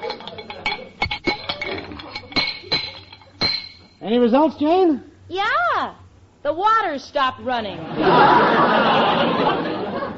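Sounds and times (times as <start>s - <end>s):
wrench tightening metal pipes: 0.0s - 4.0s
speech: 4.1s - 9.7s
laughter: 7.8s - 10.1s.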